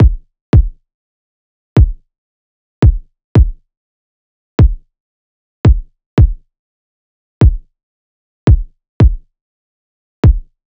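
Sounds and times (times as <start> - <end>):
kick drum loop: 0.0 - 0.8, 1.8 - 2.0, 2.8 - 3.6, 4.6 - 4.8, 5.7 - 6.4, 7.4 - 7.7, 8.5 - 9.3, 10.2 - 10.5.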